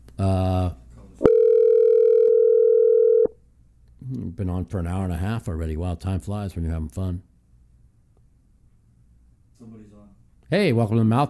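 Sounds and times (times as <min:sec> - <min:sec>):
speech: 0:00.2 - 0:00.4, 0:04.5 - 0:07.3, 0:10.5 - 0:11.2
telephone line tone during call-in: 0:01.2 - 0:03.3.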